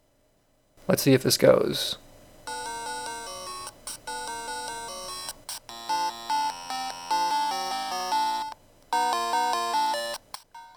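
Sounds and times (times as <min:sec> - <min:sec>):
speech: 0:00.9 - 0:02.0
Game Boy chiptune game music with one channel missing: 0:02.5 - 0:10.7.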